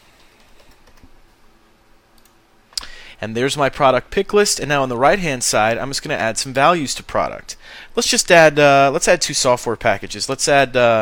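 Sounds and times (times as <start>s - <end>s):
faint computer keyboard typing: 0.2s - 1.1s
speech: 3.2s - 11.0s.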